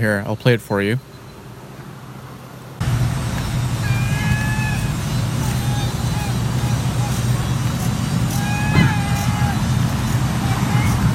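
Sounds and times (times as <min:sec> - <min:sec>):
speech: 0:00.0 - 0:01.1
gray catbird call resembling a cat: 0:03.4 - 0:11.0.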